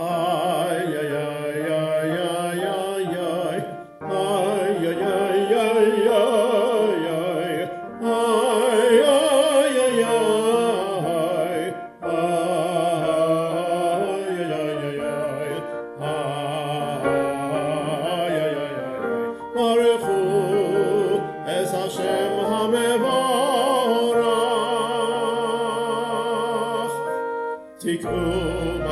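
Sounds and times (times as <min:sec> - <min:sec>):
Rosh Hashana melody: 0:00.0 - 0:28.9.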